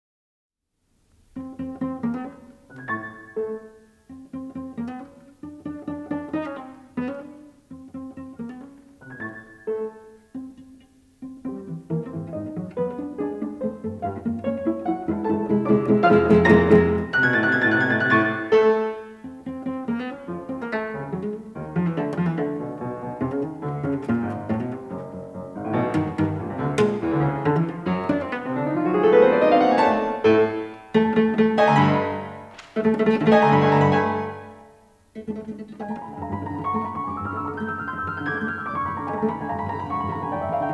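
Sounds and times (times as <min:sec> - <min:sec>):
cello sonata scherzo played pizzicato: 0:01.3 - 0:40.7.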